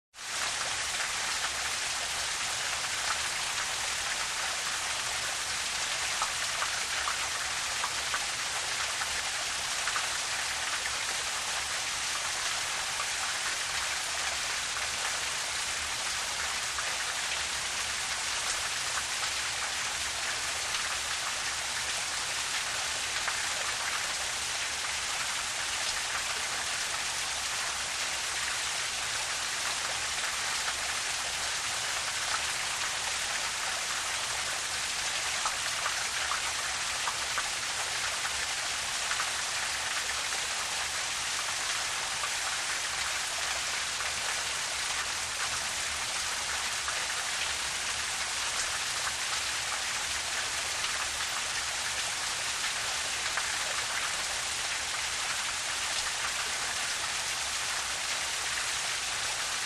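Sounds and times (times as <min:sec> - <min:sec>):
fountain water close up: 0:00.2 - 0:59.6.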